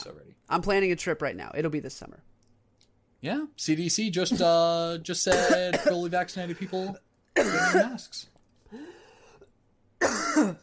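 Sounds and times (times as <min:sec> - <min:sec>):
speech: 0:00.0 - 0:02.3, 0:03.2 - 0:08.9, 0:10.0 - 0:10.6
person coughing after choking on a drink: 0:05.3 - 0:08.0, 0:10.0 - 0:10.6.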